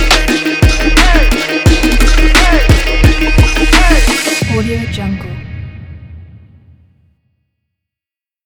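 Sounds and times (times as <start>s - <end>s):
tribal hip hop trap beat: 0.0s - 6.3s.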